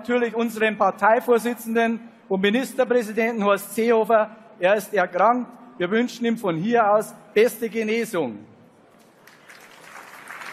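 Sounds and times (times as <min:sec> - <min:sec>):
speech: 0:00.0 - 0:08.5
weak audience applause: 0:09.0 - 0:10.5.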